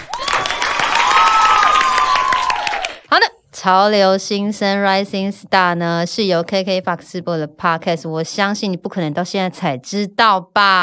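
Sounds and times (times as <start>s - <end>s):
cheering and whoops: 0.0s - 3.1s
crowd applause: 0.0s - 3.1s
speech: 3.6s - 10.8s.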